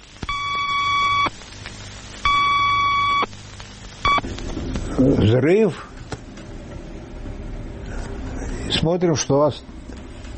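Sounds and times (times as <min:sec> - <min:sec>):
warning time signals, two long and one short: 0:00.2 - 0:01.4, 0:02.2 - 0:03.4, 0:04.0 - 0:04.4
speech: 0:05.0 - 0:05.9, 0:08.8 - 0:09.7.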